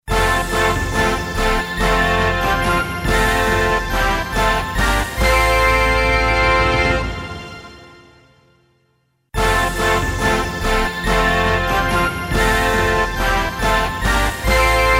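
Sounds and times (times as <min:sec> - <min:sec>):
Russian jamboree fanfare: 0:00.1 - 0:08.7, 0:09.4 - 0:14.9.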